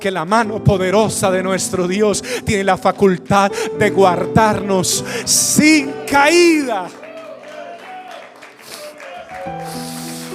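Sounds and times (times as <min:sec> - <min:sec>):
speech: 0:00.0 - 0:07.1
audience applause: 0:05.8 - 0:10.3.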